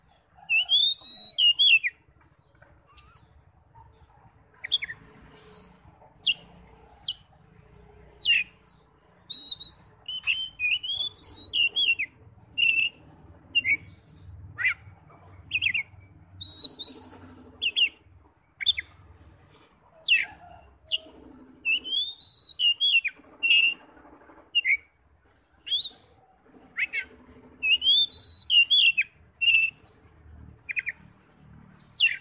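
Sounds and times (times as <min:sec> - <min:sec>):
Oriental magpie-robin song: 0:00.4 - 0:02.0, 0:02.8 - 0:03.4, 0:04.5 - 0:06.4, 0:08.2 - 0:14.9, 0:15.5 - 0:18.0, 0:18.6 - 0:19.0, 0:20.0 - 0:23.8, 0:24.5 - 0:24.9, 0:25.6 - 0:30.0, 0:30.6 - 0:31.1, 0:31.8 - 0:32.1.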